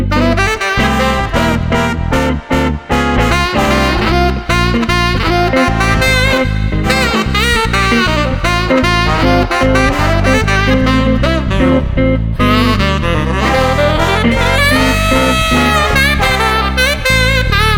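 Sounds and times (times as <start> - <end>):
jazz combo playing without drums: 0.0 - 17.7.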